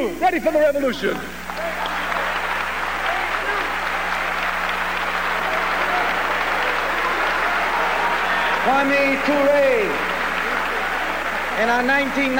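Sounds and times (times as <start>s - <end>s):
speech: 0.0s - 1.8s, 8.6s - 10.1s, 11.6s - 12.3s
audience applause: 1.4s - 12.3s.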